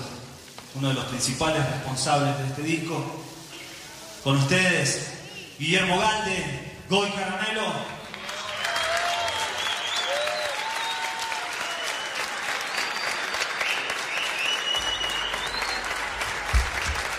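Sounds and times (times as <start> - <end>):
speech: 0.7 - 3.3, 4.2 - 7.9
audience applause: 7.8 - 17.1.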